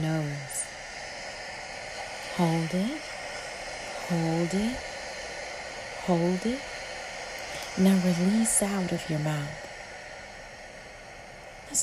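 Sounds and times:
ocean waves: 0.0s - 11.8s
speech: 2.4s - 3.1s, 4.1s - 4.9s, 6.1s - 6.7s, 7.8s - 9.6s.

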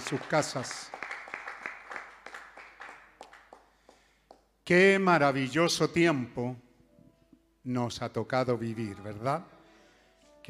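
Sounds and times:
scattered applause from a small group: 0.0s - 4.1s
speech: 0.1s - 1.0s, 4.7s - 6.6s, 7.6s - 9.6s.

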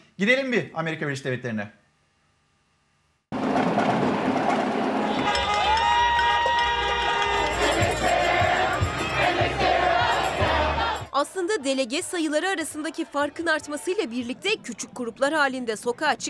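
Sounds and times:
speech: 0.2s - 1.8s, 11.2s - 16.2s
crowd of Biden supporters cheering and shouting in USA streets: 4.2s - 14.4s.

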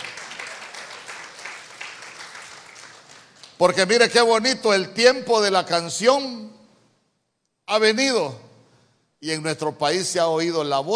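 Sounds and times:
audience clapping hands: 0.0s - 4.0s
speech: 3.6s - 6.6s, 7.7s - 8.4s, 9.2s - 10.9s.

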